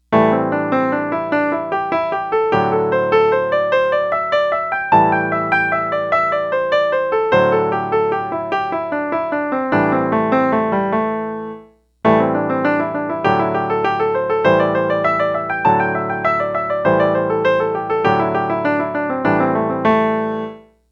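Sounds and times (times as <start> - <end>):
pentatonic scale exercise: 0.1 - 20.7.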